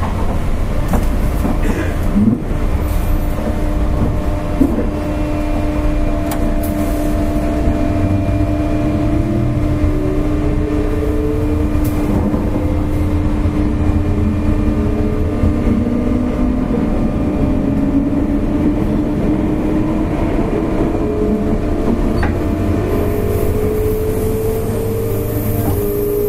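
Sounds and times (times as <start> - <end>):
JR 201-series electric train running on the loop line: 0.0 - 26.2.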